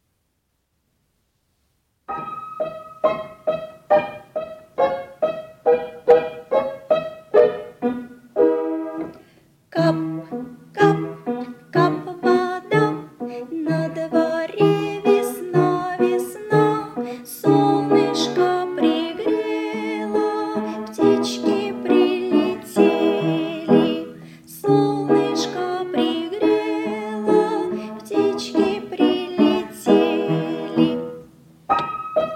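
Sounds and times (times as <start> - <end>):
piano: 2.0 - 32.3
voice: 11.8 - 31.1.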